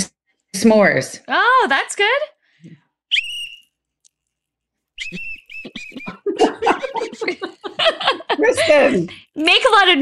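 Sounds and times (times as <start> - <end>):
speech: 0.6 - 2.8, 5.1 - 10.0
whistle blasts: 3.1 - 3.8, 5.0 - 6.2
lively voices: 5.0 - 10.0
people laughing: 5.1 - 9.3.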